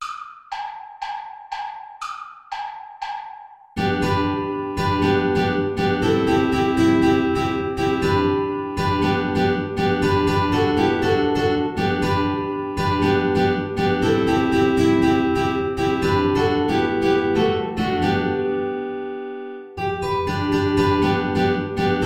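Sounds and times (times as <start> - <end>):
play-along backing track without guitar: 0.0 - 22.0.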